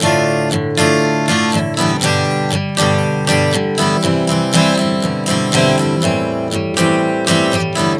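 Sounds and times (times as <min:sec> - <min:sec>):
acoustic guitar chord progressions: 0:00.0 - 0:07.9.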